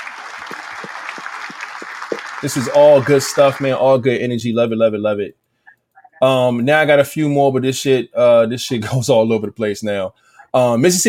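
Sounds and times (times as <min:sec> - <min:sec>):
round of applause: 0:00.0 - 0:04.0
speech: 0:02.4 - 0:05.4, 0:06.2 - 0:11.0.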